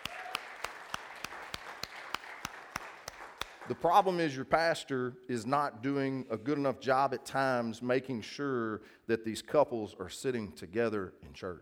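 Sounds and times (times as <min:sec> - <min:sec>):
church audience applause for servers: 0:00.0 - 0:03.9
speech: 0:03.7 - 0:11.5.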